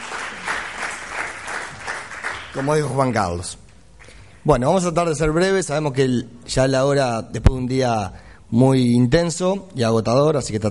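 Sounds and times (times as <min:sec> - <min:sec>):
audience applauding: 0:00.0 - 0:03.4
speech: 0:02.6 - 0:03.6, 0:04.4 - 0:10.6.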